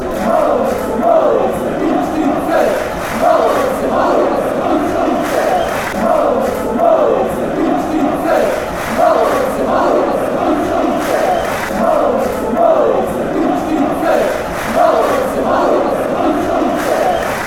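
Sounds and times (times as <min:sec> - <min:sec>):
football fans chanting: 0:00.0 - 0:17.4.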